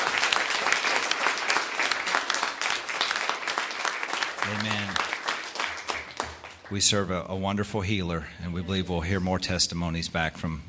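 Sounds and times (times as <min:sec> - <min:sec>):
audience clapping: 0:00.0 - 0:07.1
speech: 0:04.5 - 0:05.0, 0:06.7 - 0:10.6.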